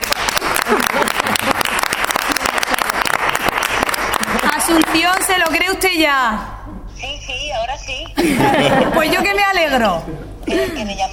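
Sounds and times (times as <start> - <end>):
applause: 0.0 - 5.6
laughter: 0.6 - 1.7, 8.2 - 10.9
speech: 5.6 - 6.5, 7.9 - 11.1.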